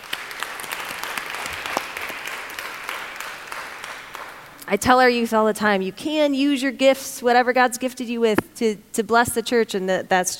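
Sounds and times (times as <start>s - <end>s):
crowd clapping: 0.0s - 4.6s
speech: 4.7s - 10.3s.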